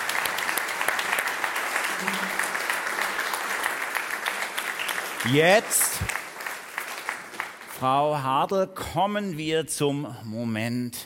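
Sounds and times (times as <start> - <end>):
audience applause: 0.0 - 7.8
speech: 5.2 - 6.2, 7.8 - 11.0.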